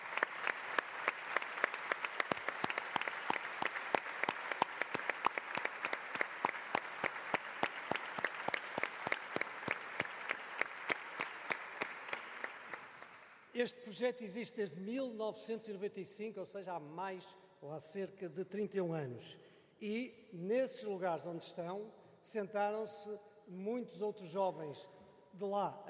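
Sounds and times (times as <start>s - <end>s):
crowd applause: 0.0s - 13.4s
speech: 13.6s - 25.8s.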